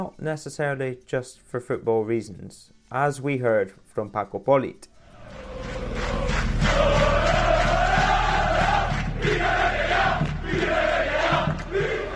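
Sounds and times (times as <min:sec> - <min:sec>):
speech: 0:00.0 - 0:05.5
football fans roaring: 0:05.0 - 0:12.1.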